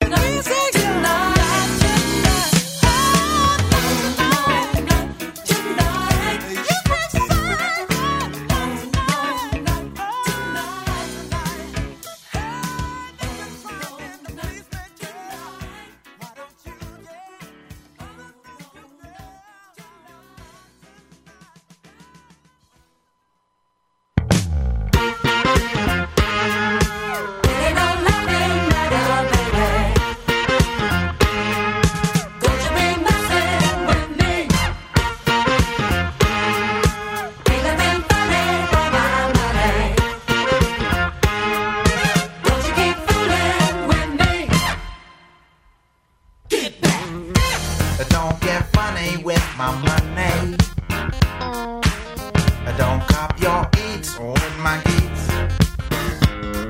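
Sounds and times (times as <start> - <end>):
jazz music: 0.0 - 14.7, 24.2 - 45.3, 47.3 - 56.6.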